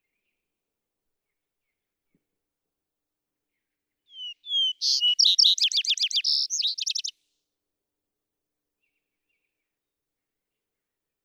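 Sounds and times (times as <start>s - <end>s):
vesper sparrow singing: 4.1s - 7.1s.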